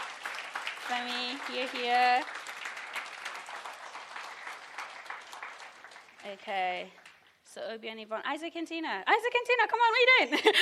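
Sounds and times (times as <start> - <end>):
audience clapping: 0.0 - 7.4
speech: 0.9 - 2.4, 6.2 - 10.6.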